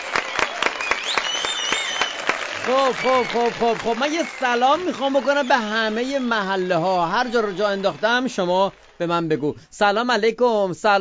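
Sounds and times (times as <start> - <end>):
applause in honour of the listeners: 0.0 - 9.9
faint high whistling tone gliding upward: 0.4 - 6.7
speech: 2.7 - 10.9.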